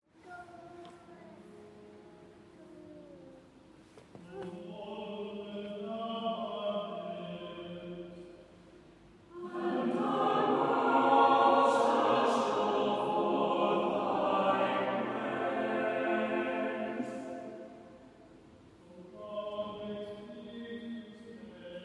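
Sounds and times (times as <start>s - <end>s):
preces sung by a choir in Truro Cathedral: 4.3s - 8.4s, 9.3s - 21.8s.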